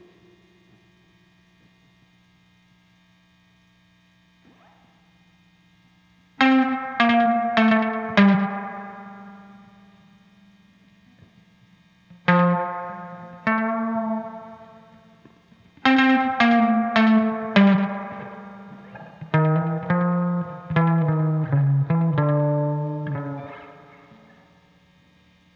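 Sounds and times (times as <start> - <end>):
guitar overdub: 6.3 - 25.5.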